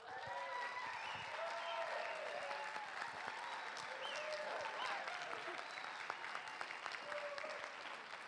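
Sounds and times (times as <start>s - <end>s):
audience standing ovation applause at a church community gathering: 0.0s - 8.2s.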